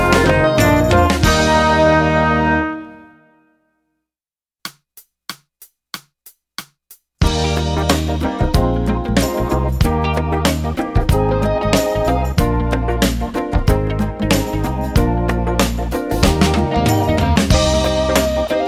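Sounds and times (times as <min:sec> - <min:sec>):
studies in concert Eb: 0:00.0 - 0:03.4, 0:07.2 - 0:18.6.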